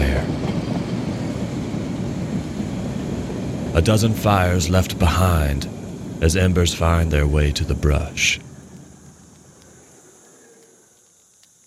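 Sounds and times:
steam train rolling along steel tracks: 0.0s - 9.2s
speech: 3.8s - 8.5s.

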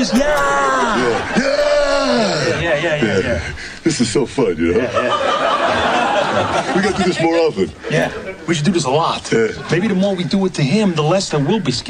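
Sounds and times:
speech: 0.0s - 1.4s, 2.8s - 11.8s
people screaming to scare someone: 0.0s - 3.2s
laughter: 0.0s - 11.8s.

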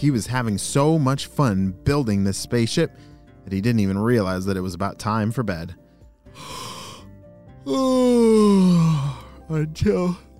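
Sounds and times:
speech: 0.0s - 5.8s, 7.6s - 10.3s
person yawning: 6.4s - 9.4s.

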